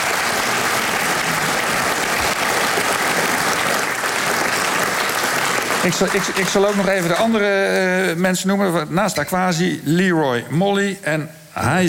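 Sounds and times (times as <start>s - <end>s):
audience applause: 0.0s - 7.6s
speech: 5.8s - 11.8s.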